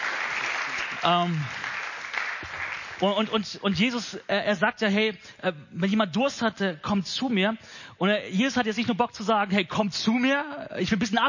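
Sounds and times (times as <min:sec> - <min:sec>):
crowd applause: 0:00.0 - 0:03.2
speech: 0:01.0 - 0:01.6, 0:03.0 - 0:11.2.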